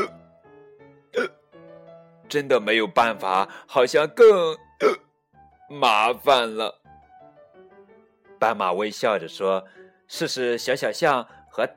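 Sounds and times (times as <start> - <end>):
hiccup: 1.2 - 1.4, 4.8 - 5.1
speech: 2.3 - 5.0, 5.7 - 6.8, 8.4 - 11.7.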